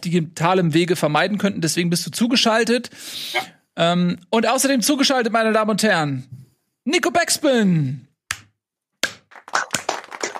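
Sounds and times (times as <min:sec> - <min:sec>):
speech: 0:00.0 - 0:08.1
one man clapping for himself: 0:08.3 - 0:10.3.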